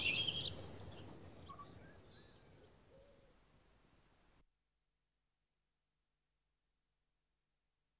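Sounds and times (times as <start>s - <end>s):
house sparrow Passer domesticus chatter: 0.0s - 2.8s.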